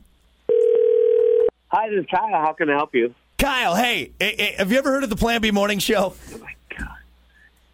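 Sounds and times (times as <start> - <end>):
telephone dial tone: 0.5 - 1.5
speech: 1.9 - 6.3.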